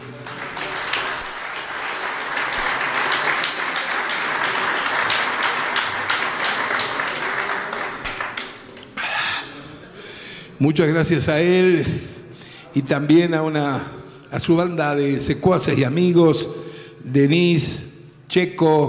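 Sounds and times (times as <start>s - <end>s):
audience applause: 0.0s - 8.7s
speech: 10.6s - 18.8s.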